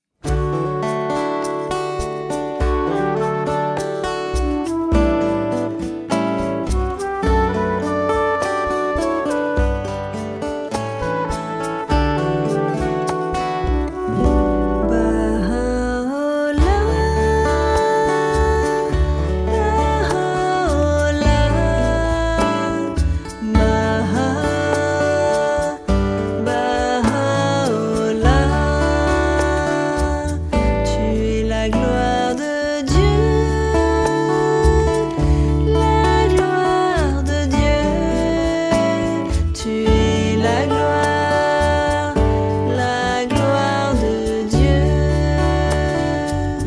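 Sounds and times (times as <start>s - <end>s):
French song: 0.2s - 46.6s.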